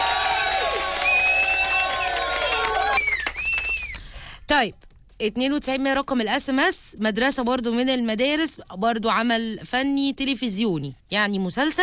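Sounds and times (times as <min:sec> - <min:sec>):
audience applauding and cheering for contestants: 0:00.0 - 0:04.0
speech: 0:04.6 - 0:11.8.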